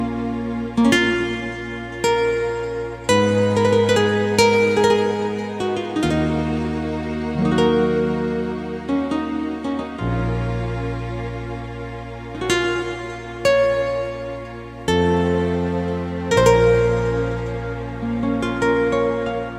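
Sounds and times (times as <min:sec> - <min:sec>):
guitar: 0:00.0 - 0:19.5.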